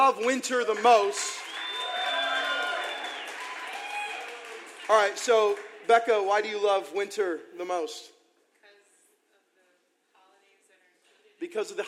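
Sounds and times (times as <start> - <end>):
speech: 0.0 - 1.5, 4.9 - 8.2, 11.4 - 11.8
audience applause and cheers: 0.0 - 6.4.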